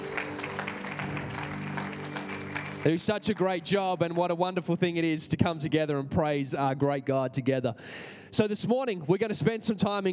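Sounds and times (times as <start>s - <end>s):
audience applause: 0.0s - 4.2s
speech: 2.8s - 10.1s.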